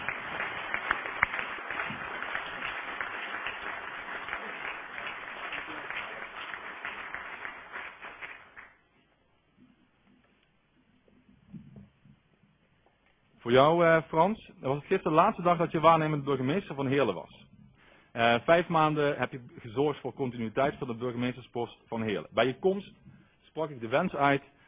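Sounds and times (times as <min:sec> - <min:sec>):
audience applause: 0:00.0 - 0:08.8
speech: 0:13.5 - 0:17.5, 0:18.2 - 0:23.0, 0:23.6 - 0:24.5.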